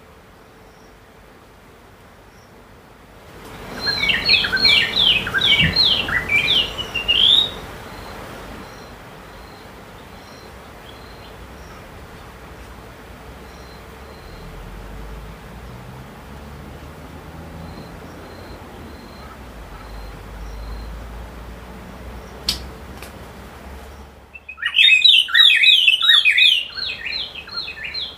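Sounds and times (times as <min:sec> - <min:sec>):
low steady hum: 0:00.0 - 0:24.6
bird song near Simonga Zambia: 0:03.5 - 0:12.3, 0:13.3 - 0:15.2, 0:17.2 - 0:22.7, 0:23.8 - 0:28.1
sharp click: 0:22.4 - 0:23.2.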